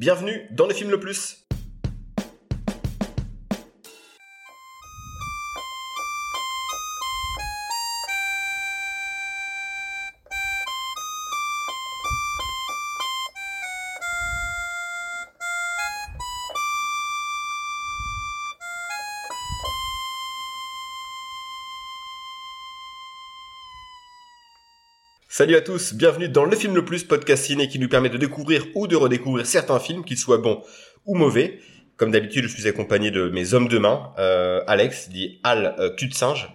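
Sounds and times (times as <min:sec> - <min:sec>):
speech: 0:00.0 - 0:01.5, 0:25.4 - 0:36.5
long unending electronic ringing: 0:04.2 - 0:25.2
soft low thumps: 0:04.8 - 0:08.2, 0:10.2 - 0:16.7, 0:19.3 - 0:20.1
low pulses: 0:04.8 - 0:08.7, 0:10.0 - 0:16.9, 0:17.7 - 0:20.6.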